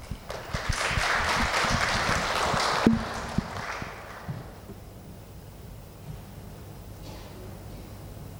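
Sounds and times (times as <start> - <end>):
audience applause: 0.0 - 4.6.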